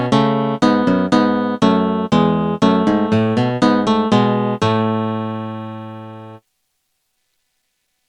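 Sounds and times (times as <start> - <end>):
duet in A major: 0.0 - 6.4.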